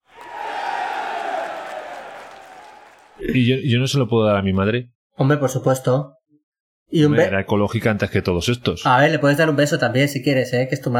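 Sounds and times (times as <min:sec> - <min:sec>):
applause: 0:00.0 - 0:03.2
speech: 0:03.2 - 0:06.2, 0:06.9 - 0:10.9.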